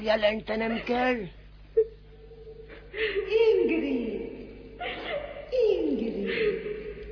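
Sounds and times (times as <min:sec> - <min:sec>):
speech: 0:00.0 - 0:01.4, 0:03.0 - 0:04.2
woman crying: 0:01.8 - 0:07.0.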